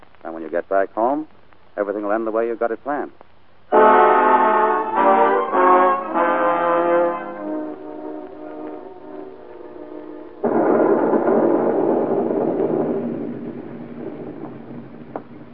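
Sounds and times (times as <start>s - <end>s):
speech: 0.5s - 4.1s
heavy rain: 3.6s - 15.5s
rolling thunder: 7.9s - 15.5s.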